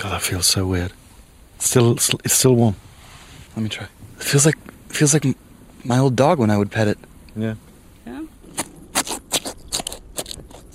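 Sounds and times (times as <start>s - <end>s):
speech: 0.0s - 1.0s, 1.6s - 2.9s, 3.5s - 8.2s
rib cage being cut open: 8.4s - 10.7s.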